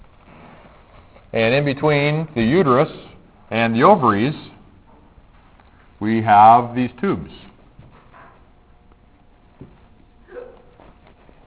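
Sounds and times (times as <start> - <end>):
speech: 1.3 - 4.5, 6.0 - 7.4
sneeze: 10.3 - 10.7.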